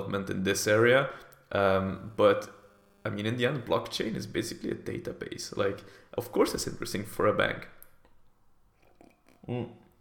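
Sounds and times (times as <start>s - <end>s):
speech: 0.1s - 7.8s, 9.5s - 9.8s
person sipping coffee: 8.7s - 9.9s.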